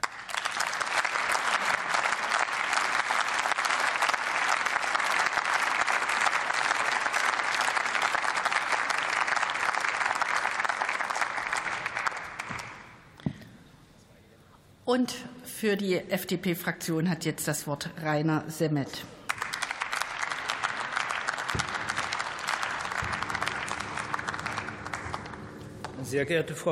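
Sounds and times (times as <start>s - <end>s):
applause from a large parliamentary assembly: 0.0s - 13.1s, 19.3s - 26.3s
speech: 14.9s - 19.2s, 26.1s - 26.7s.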